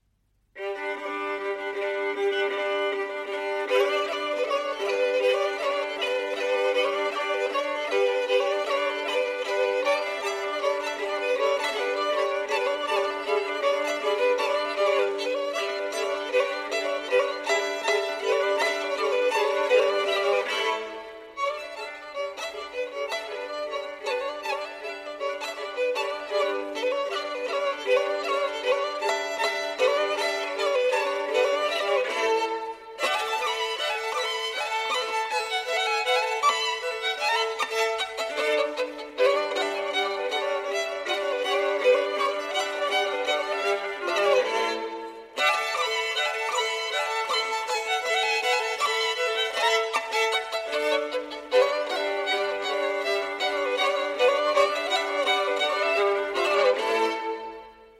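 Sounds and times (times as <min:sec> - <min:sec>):
duet for two violins: 0:00.0 - 0:57.9
bagpipes: 0:00.6 - 0:57.9.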